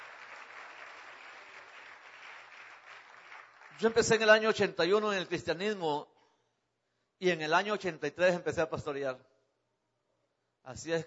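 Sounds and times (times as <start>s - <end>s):
audience applause in church: 0.0s - 4.2s
speech: 3.8s - 6.1s, 7.2s - 9.3s, 10.6s - 11.0s.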